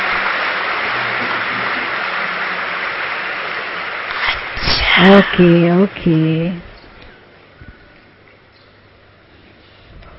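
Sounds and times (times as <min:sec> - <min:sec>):
hands clapping: 0:00.0 - 0:04.6
speech: 0:05.0 - 0:06.7.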